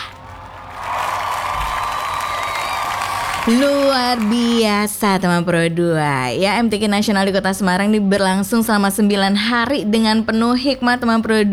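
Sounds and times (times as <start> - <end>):
crowd applause: 0.0 - 5.1
speech: 3.4 - 11.5.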